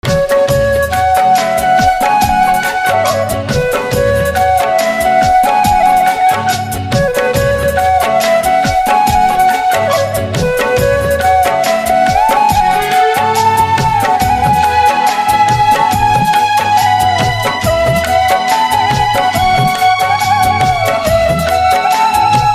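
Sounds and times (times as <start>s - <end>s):
flute instrumental ringtone: 0.0s - 22.5s.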